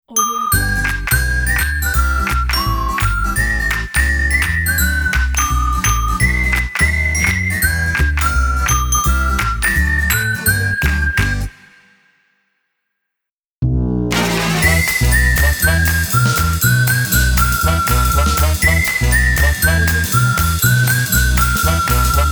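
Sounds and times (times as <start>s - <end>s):
Christmas logo jingle: 0.1s - 11.9s, 14.2s - 22.2s.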